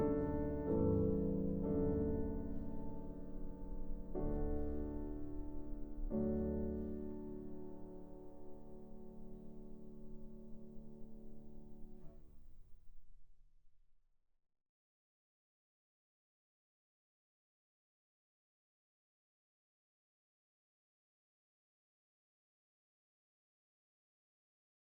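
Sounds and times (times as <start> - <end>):
piano sonata in A major andante: 0.0 - 12.6.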